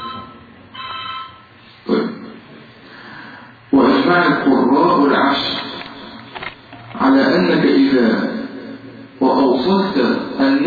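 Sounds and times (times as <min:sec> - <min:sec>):
phone electronic ringtone: 0:00.0 - 0:01.5
speech: 0:04.1 - 0:05.6, 0:07.4 - 0:08.3, 0:09.6 - 0:10.6.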